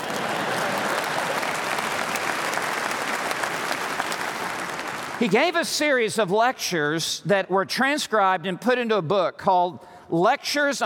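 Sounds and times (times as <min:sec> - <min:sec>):
audience clapping: 0:00.0 - 0:06.0
speech: 0:05.2 - 0:10.8.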